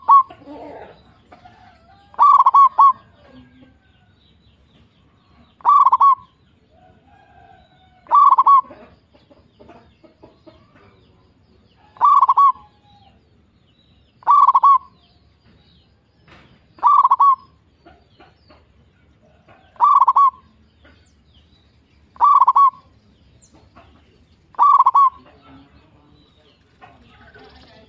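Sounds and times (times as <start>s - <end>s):
zebra dove cooing: 0.0s - 3.6s, 5.6s - 6.4s, 8.0s - 9.0s, 11.8s - 13.2s, 14.2s - 15.0s, 16.8s - 17.6s, 19.6s - 20.5s, 22.2s - 22.9s, 24.5s - 25.4s.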